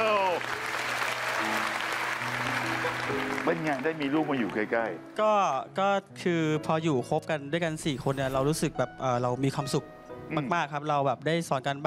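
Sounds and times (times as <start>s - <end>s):
audience applause: 0.0s - 5.1s
speech: 3.1s - 11.8s.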